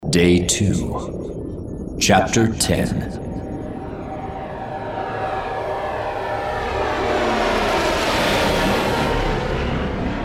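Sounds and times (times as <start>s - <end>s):
speech: 0.1s - 1.3s, 2.0s - 3.2s
Imperial fighter bent-wing interceptor engines zooming overhead: 2.6s - 10.2s.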